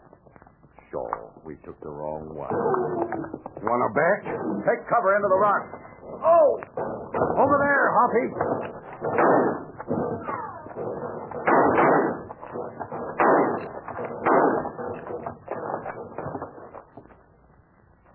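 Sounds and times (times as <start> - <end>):
speech: 0.9 - 10.0
gunshots in a canyon shootout: 4.0 - 16.9.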